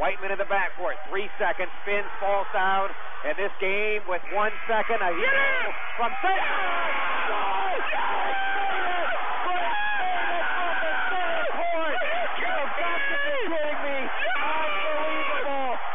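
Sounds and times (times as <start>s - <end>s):
speech: 0.0s - 8.9s
basketball crowd cheering a winning basket: 0.0s - 15.9s.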